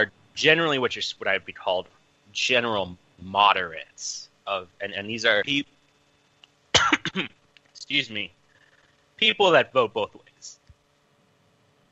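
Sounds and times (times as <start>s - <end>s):
speech: 0.0s - 5.7s, 7.1s - 8.4s, 9.2s - 10.6s
person choking and coughing: 6.8s - 7.4s
throat clearing: 6.8s - 7.4s.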